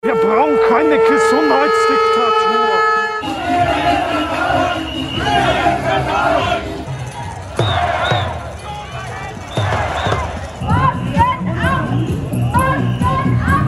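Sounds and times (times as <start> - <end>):
speech: 0.3 - 2.8
protesters chanting at a Querdenker demonstration: 3.2 - 13.6.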